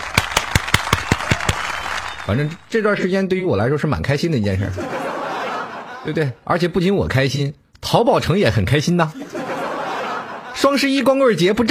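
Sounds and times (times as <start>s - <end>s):
hand clapping: 0.0s - 2.6s
speech: 2.3s - 5.0s, 6.0s - 9.3s, 10.6s - 11.6s
laughter: 4.6s - 6.3s, 9.1s - 11.0s.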